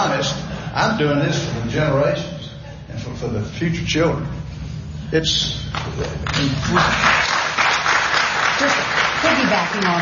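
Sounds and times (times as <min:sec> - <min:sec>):
speech: 0:00.8 - 0:04.4, 0:05.1 - 0:07.4, 0:09.5 - 0:10.0
audience applause for congressional term limits: 0:05.7 - 0:10.0.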